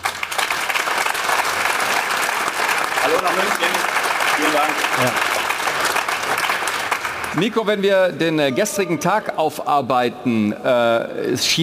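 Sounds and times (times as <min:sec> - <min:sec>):
studio audience applause on a German football talk show: 0:00.0 - 0:07.9
speech: 0:03.1 - 0:05.3, 0:07.4 - 0:11.6.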